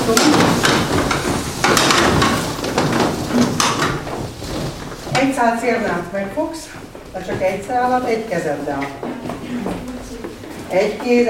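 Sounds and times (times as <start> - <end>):
chairs being pushed together: 0.0 - 11.2
speech: 0.1 - 0.4, 5.2 - 9.8, 10.7 - 11.2.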